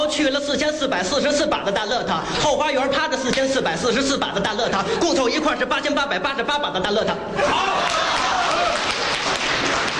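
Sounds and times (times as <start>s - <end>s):
speech: 0.2s - 8.0s
audience applause: 7.5s - 9.9s.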